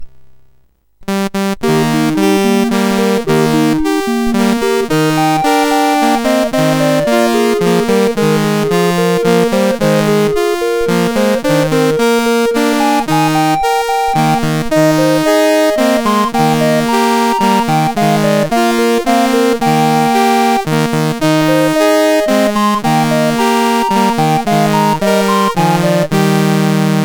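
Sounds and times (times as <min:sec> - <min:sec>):
lullaby on SID CSG8580R5 chip: 0:01.0 - 0:27.0.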